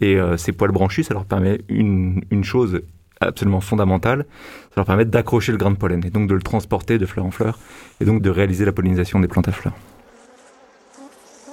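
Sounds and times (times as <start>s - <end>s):
speech: 0.0s - 9.9s
bee buzzing: 9.3s - 11.5s.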